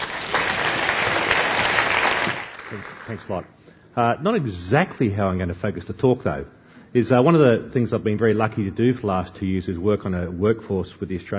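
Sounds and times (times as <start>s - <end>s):
audience applause welcoming a speaker onto the stage at a talk: 0.0s - 3.5s
speech: 3.1s - 11.3s.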